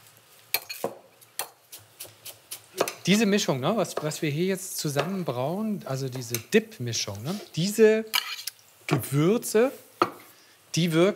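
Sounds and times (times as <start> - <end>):
knife chopping fresh coriander: 0.8 - 3.0
speech: 3.1 - 8.3, 8.9 - 9.9, 10.8 - 11.1.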